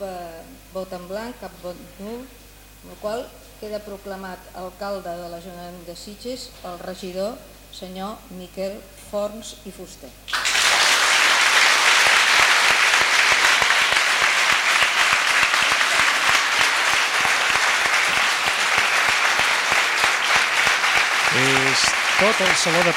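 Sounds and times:
speech: 0.0 - 10.4, 21.3 - 22.9
council chamber applause: 10.3 - 22.9.

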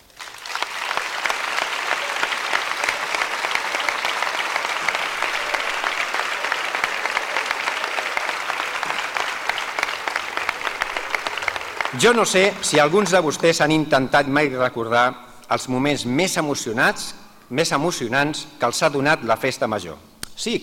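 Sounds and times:
large audience applause: 0.0 - 13.6
speech: 12.0 - 20.6.

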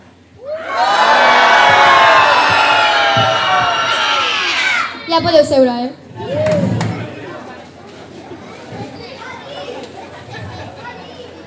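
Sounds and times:
crowd of children shouting loudly: 0.4 - 5.1
speech: 5.2 - 6.0.

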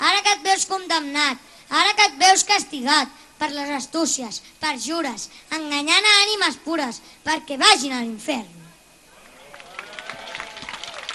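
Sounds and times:
speech: 0.6 - 8.6
audience applause: 9.2 - 11.1.

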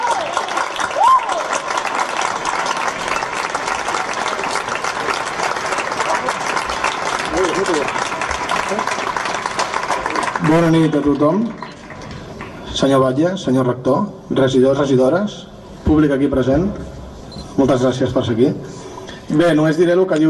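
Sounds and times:
crowd applause: 0.0 - 12.6
speech: 10.5 - 11.6, 12.8 - 16.9, 17.6 - 18.6, 19.3 - 20.2.

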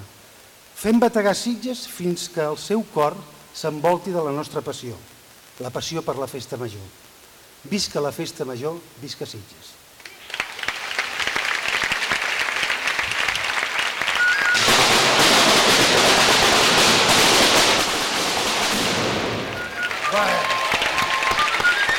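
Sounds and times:
speech: 0.8 - 9.8
fireworks display finale at Sitges festa major: 10.6 - 21.9.

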